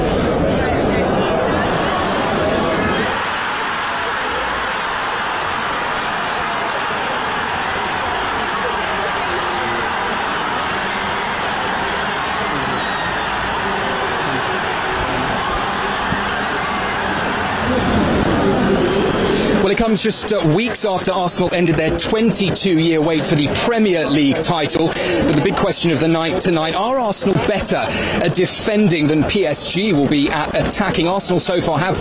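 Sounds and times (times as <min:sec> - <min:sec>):
football crowd cheering in celebration after a goal: 0:00.0 - 0:31.9
speech: 0:19.8 - 0:31.9.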